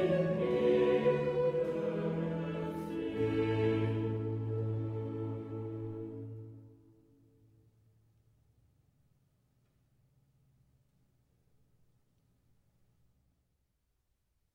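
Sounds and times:
chorale: 0.0s - 7.7s.

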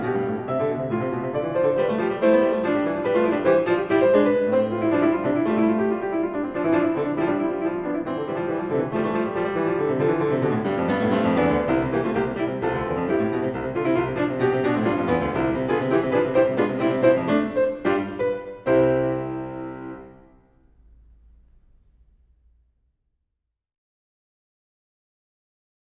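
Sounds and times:
keyboard fugue in C major: 0.0s - 20.6s.

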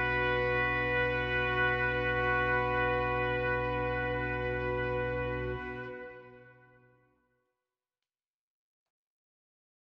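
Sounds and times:
organ playing a concerto in D major: 0.0s - 6.6s
horn playing a concerto in D major: 0.0s - 7.0s.

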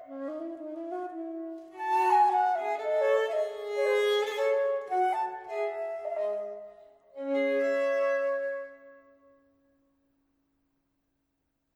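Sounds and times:
violin playing a sonata aria: 0.0s - 8.7s
flute playing a sonata aria: 0.0s - 9.2s.

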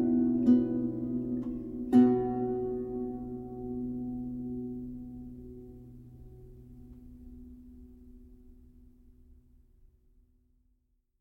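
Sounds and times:
Scottish lute tune: 0.0s - 7.6s.

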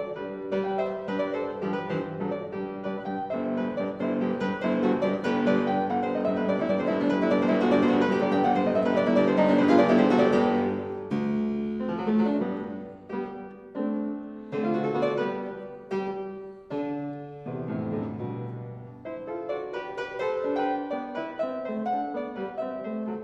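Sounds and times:
solo fortepiano playing bagatelles: 0.0s - 23.2s.

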